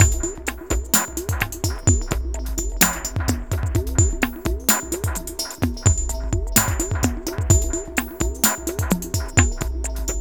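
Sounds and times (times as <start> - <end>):
ethnotronic processed percussion: 0.0 - 10.1.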